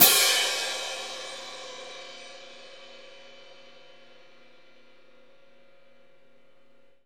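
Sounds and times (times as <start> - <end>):
orchestral concert cymbal crash: 0.0 - 4.6.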